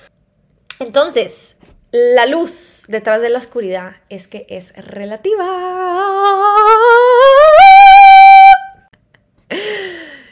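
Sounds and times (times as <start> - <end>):
speech: 0.8 - 6.5
loud high-pitched scream: 6.0 - 8.8.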